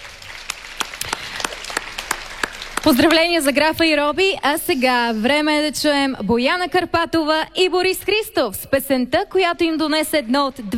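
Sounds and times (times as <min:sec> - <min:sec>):
applause at a music awards ceremony: 0:00.0 - 0:03.6
speech: 0:02.9 - 0:10.7.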